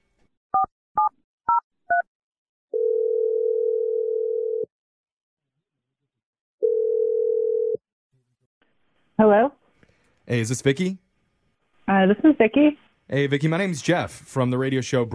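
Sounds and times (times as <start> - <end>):
telephone ringing tones: 2.8 - 4.7, 6.6 - 7.8
speech: 9.2 - 9.6, 10.3 - 11.1, 11.9 - 15.1.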